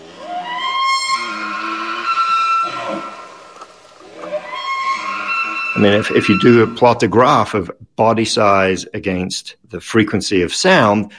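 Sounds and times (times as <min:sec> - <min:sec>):
high-pitched elk call: 0:00.0 - 0:07.0
speech: 0:05.8 - 0:11.1.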